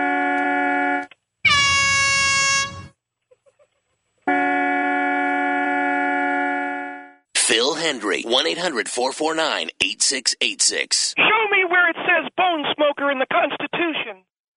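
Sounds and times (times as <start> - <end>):
car horn honking: 0.0 - 3.0, 4.3 - 7.2
speech: 7.6 - 11.5, 12.6 - 14.3.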